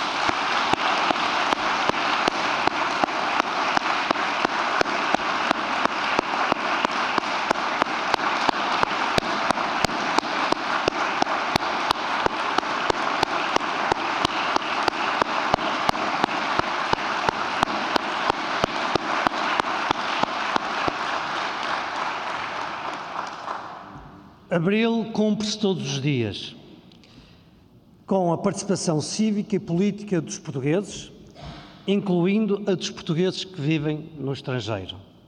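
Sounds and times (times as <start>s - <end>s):
audience applause: 0.0s - 23.9s
speech: 24.6s - 26.6s, 28.1s - 31.1s, 31.9s - 35.0s.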